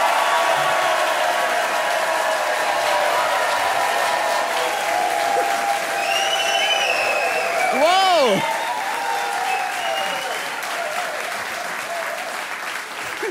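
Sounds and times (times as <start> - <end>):
audience applauding at a live satire show in the Eifel: 0.0 - 13.2
high whistles from the audience: 5.8 - 7.8, 9.3 - 10.6.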